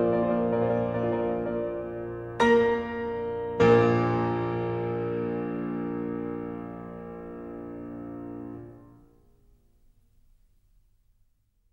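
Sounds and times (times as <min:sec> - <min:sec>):
old dance tune allegro on piano: 0:00.0 - 0:09.2.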